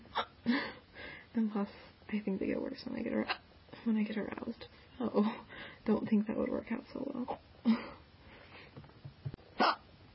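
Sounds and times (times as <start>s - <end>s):
person hiccuping loudly: 0.1s - 0.4s, 9.6s - 9.9s
speech: 0.5s - 0.8s, 1.4s - 7.9s
quiet breathing: 0.5s - 2.1s, 4.6s - 5.9s, 7.6s - 8.8s.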